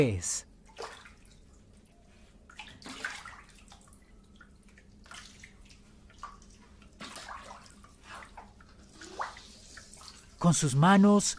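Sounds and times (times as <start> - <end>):
speech: 0.0 - 1.0, 10.4 - 11.3
water dripping from a tap onto a flooded floor: 0.5 - 11.3
soft continuous watery wash: 2.5 - 11.3.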